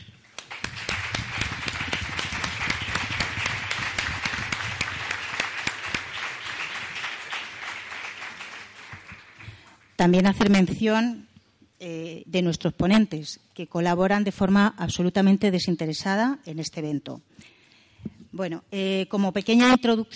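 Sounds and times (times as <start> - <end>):
loud audience applause: 0.4 - 9.9
speech: 10.0 - 17.6, 18.4 - 20.1.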